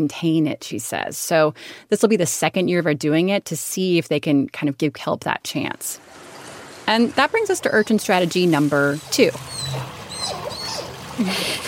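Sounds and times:
speech: 0:00.0 - 0:06.2, 0:06.9 - 0:10.4, 0:11.2 - 0:11.6
baby sea otter vocalizing at the Monterey Bay Aquarium: 0:09.0 - 0:11.2.

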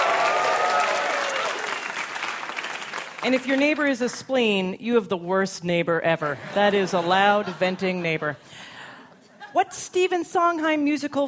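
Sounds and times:
audience clapping: 0:00.0 - 0:04.1
speech: 0:03.2 - 0:08.7, 0:09.5 - 0:11.2.

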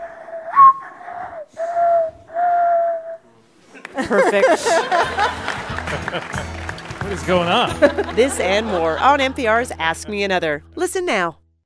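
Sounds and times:
person whistling a bird call imitation: 0:00.3 - 0:03.2
laughter: 0:03.7 - 0:09.8
speech: 0:04.0 - 0:11.4.

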